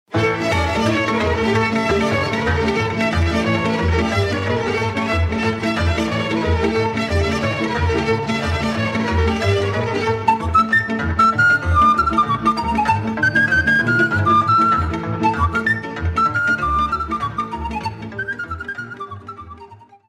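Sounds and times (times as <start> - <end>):
Romanian sirba folk dance tune: 0.1 - 20.0.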